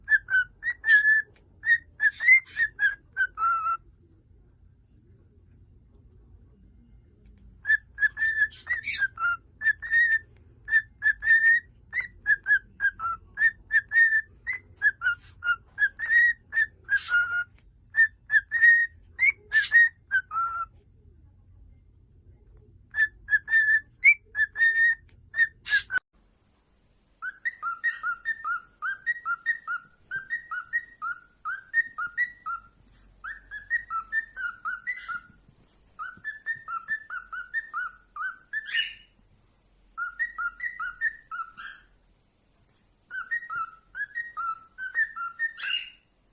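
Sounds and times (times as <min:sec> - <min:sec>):
cockatiel whistling: 0:00.0 - 0:03.8, 0:07.6 - 0:20.7, 0:22.9 - 0:26.0, 0:27.2 - 0:35.4, 0:36.0 - 0:39.2, 0:40.0 - 0:42.0, 0:43.1 - 0:46.0.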